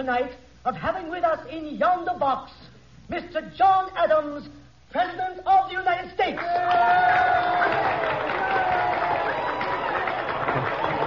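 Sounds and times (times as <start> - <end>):
speech: 0.0 - 8.3
crowd cheering: 6.4 - 11.0.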